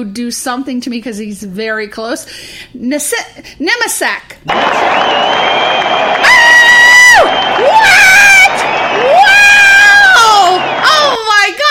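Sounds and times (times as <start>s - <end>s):
speech: 0.0s - 6.2s
applause track with cheering crowd: 4.5s - 11.6s.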